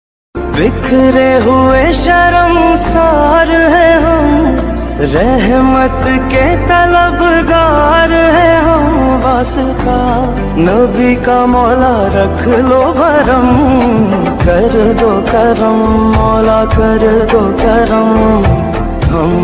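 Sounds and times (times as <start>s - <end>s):
naat devotional song ringtone: 0.4s - 19.4s.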